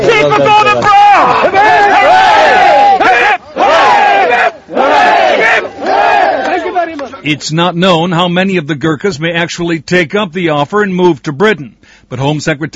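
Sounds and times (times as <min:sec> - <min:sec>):
crowd chanting in thanks to the Gurkhas: 0:00.0 - 0:07.2
speech: 0:07.3 - 0:12.7.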